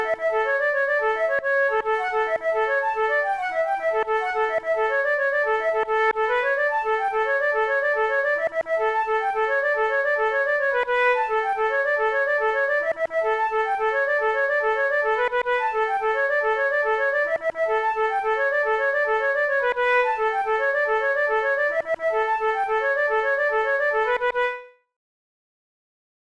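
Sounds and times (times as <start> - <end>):
flute: 0.0 - 25.0.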